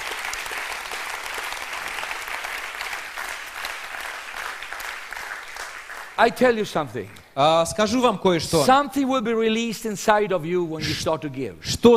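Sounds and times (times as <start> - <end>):
church congregation applauding: 0.0 - 7.3
speech: 6.2 - 11.9.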